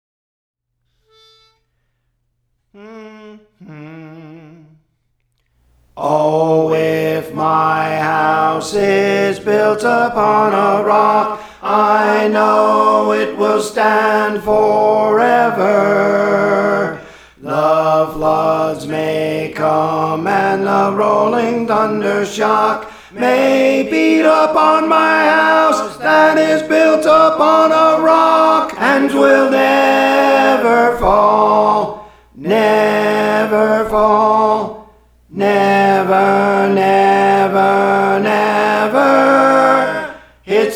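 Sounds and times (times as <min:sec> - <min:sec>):
tenor singing songs: 0:02.8 - 0:04.8, 0:05.8 - 0:40.7.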